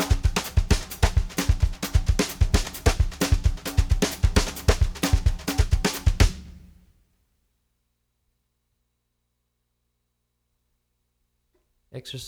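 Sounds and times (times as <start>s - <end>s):
samba drumming with brushes: 0.0s - 6.8s.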